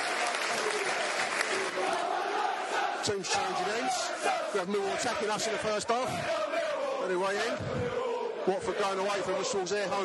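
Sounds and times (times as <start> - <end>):
football fans applauding: 0.0 - 4.4
murmur of voices: 1.3 - 10.0
speech: 3.0 - 10.0.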